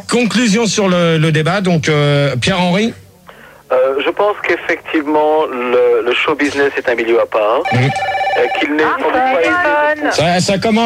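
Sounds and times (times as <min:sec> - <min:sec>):
speech: 0:00.0 - 0:03.0, 0:04.2 - 0:10.8
telephone ringtone melody: 0:07.6 - 0:09.7.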